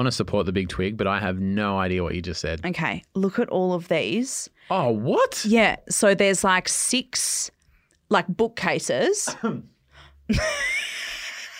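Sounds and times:
speech: 0.0 - 9.7, 10.3 - 10.8
person coughing: 9.2 - 9.7.

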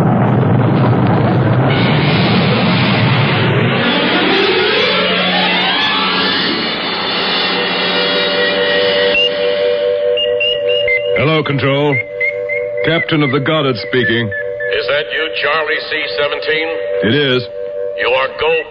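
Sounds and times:
rocket engines at liftoff: 0.0 - 14.8
speech: 12.9 - 18.6.

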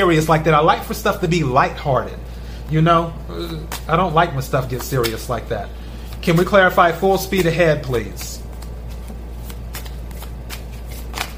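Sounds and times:
speech: 0.0 - 8.4
tarot cards being shuffled: 3.6 - 11.3.

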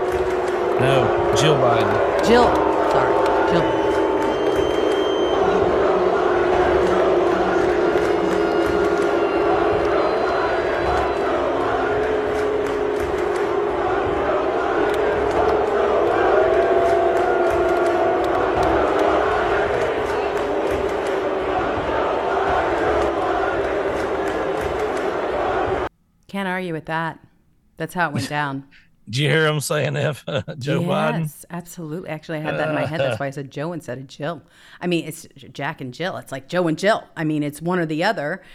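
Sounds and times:
crowd booing: 0.0 - 25.9, 30.6 - 31.2, 32.5 - 33.2
speech: 0.8 - 3.8, 27.8 - 38.5
laughter: 29.4 - 31.3, 32.5 - 33.3.

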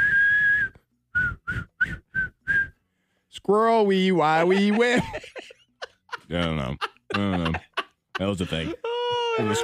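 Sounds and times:
person whistling a tune: 0.0 - 2.8
speech: 3.4 - 5.3, 6.3 - 9.6
laughter: 4.2 - 9.6.

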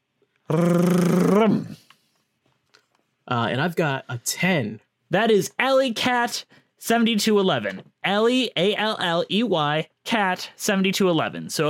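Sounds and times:
speech: 0.5 - 1.7, 3.5 - 11.6
voice imitating a drum roll: 0.5 - 1.8.

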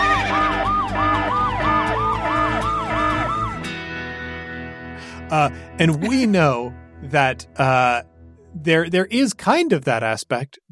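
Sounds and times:
alarm siren sound effect: 0.0 - 3.8
speech: 5.3 - 10.7.

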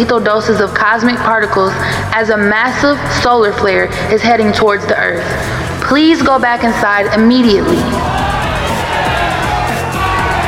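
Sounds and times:
speech: 0.0 - 8.1
restless crowd shouting: 7.7 - 10.4.

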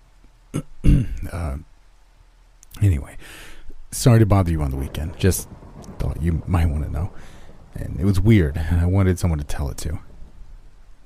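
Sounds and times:
man clearing his throat awkwardly: 0.5 - 1.4
speech: 1.2 - 1.7, 2.8 - 10.1.

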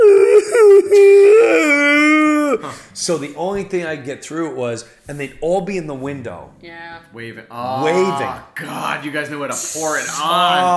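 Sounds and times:
person imitating a child's wailing cry: 0.0 - 2.6
speech: 3.1 - 10.7.

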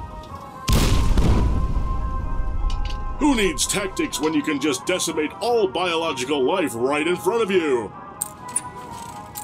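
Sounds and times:
video game tactical nuclear catapult explosions: 0.7 - 3.7
speech: 3.2 - 8.0.

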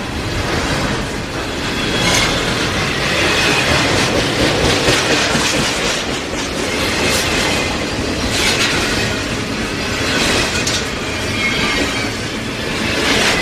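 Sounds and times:
train running on tracks: 0.0 - 13.4.

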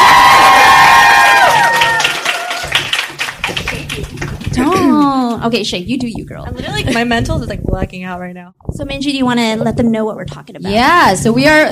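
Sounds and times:
crowd cheering with shouts and whoops: 0.0 - 4.8
scattered clapping: 0.0 - 5.4
speech: 5.4 - 11.7.

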